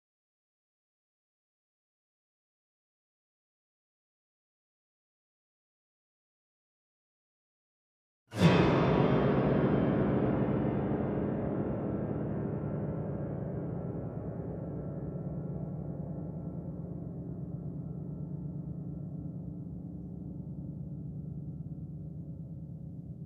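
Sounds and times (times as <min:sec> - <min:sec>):
horror grand piano effect: 0:08.4 - 0:23.2.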